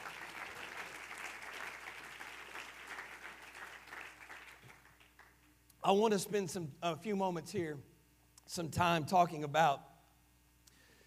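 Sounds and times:
audience clapping hands: 0:00.0 - 0:05.6
speech: 0:05.8 - 0:07.9, 0:08.5 - 0:09.9.

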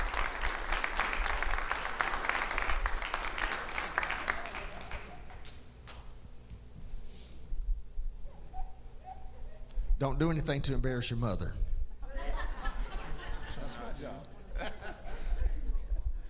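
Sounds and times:
audience clapping at a church service welcoming a guest preacher: 0:00.0 - 0:06.1
speech: 0:10.0 - 0:11.7
laughter: 0:12.0 - 0:16.2.

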